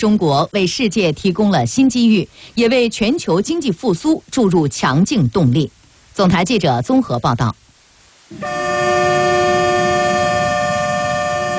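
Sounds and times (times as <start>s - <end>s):
speech: 0.0s - 7.6s, 8.3s - 9.6s
freight train slowly pulling out of station: 8.4s - 11.5s.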